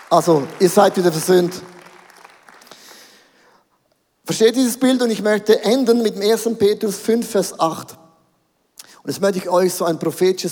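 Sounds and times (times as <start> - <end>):
audience applause: 0.0 - 3.2
speech: 0.1 - 1.7, 4.3 - 8.0, 9.0 - 10.5.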